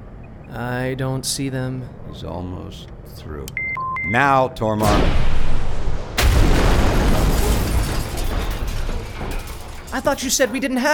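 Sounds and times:
speech: 0:00.5 - 0:05.4, 0:09.9 - 0:10.9
concealed missile tubes firing with an explosion: 0:04.8 - 0:09.0
sustained roaring rumble: 0:04.8 - 0:09.2.

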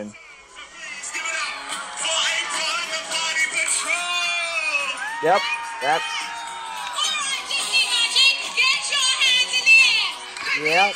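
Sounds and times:
speech: 0:00.0 - 0:00.2, 0:05.2 - 0:06.3, 0:10.6 - 0:10.9
crowd chattering and shouting at a cruise ship sail-away deck party: 0:00.0 - 0:10.9
people cheering: 0:00.8 - 0:10.2.

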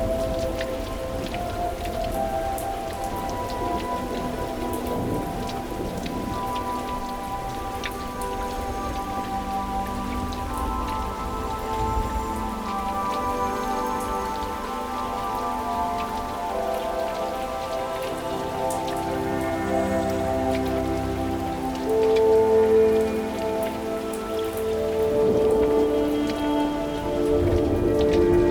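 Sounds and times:
rain falling outside a window: 0:00.0 - 0:28.5.

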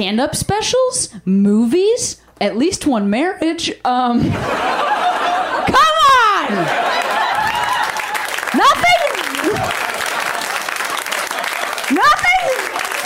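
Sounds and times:
speech: 0:00.0 - 0:05.9
laughter: 0:04.2 - 0:13.0
loud whooping yells: 0:05.8 - 0:10.0
crowd applauding: 0:06.5 - 0:13.0.

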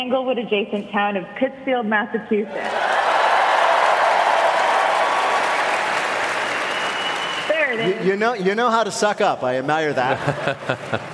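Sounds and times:
speech: 0:00.0 - 0:02.9, 0:07.8 - 0:11.1
audience applause: 0:02.6 - 0:08.4
laughter: 0:09.8 - 0:11.1.

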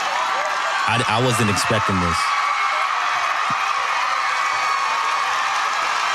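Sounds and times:
large crowd cheering wildly: 0:00.0 - 0:06.1
laughter: 0:00.9 - 0:02.2
speech: 0:00.9 - 0:02.4.

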